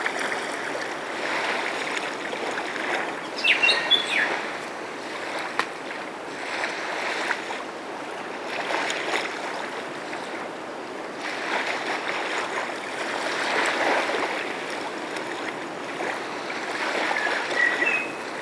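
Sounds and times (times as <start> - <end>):
gentle waves lapping the shoreline: 0.0 - 18.4.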